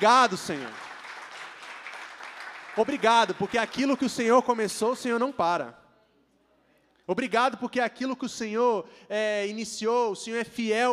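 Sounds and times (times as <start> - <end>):
speech: 0.0 - 0.9, 2.8 - 5.8, 7.1 - 10.9
audience applause: 0.0 - 4.5.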